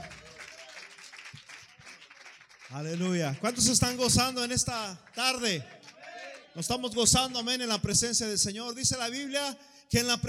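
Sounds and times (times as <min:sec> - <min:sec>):
audience applause: 0:00.0 - 0:06.5
speech: 0:02.7 - 0:05.8, 0:06.6 - 0:10.2.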